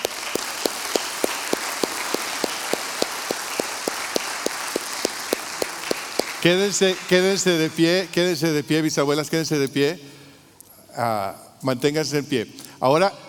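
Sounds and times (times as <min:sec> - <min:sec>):
audience applause in a gym: 0:00.0 - 0:07.4
speech: 0:06.4 - 0:10.1, 0:11.0 - 0:13.2.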